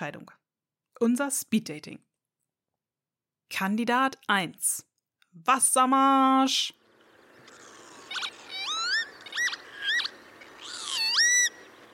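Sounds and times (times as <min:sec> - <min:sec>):
speech: 0:00.0 - 0:00.4, 0:01.0 - 0:02.1, 0:03.5 - 0:06.8
Northern Lapwing pee-wit calls: 0:06.8 - 0:11.9.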